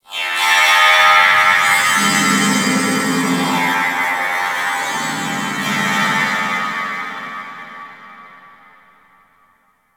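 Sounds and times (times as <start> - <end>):
space trench space battle ambience: 1.1 - 8.2.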